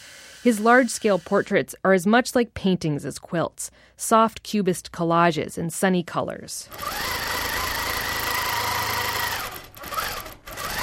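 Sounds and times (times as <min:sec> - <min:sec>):
speech: 0:00.4 - 0:07.2
large automated quilting sewing machine running: 0:06.7 - 0:10.8.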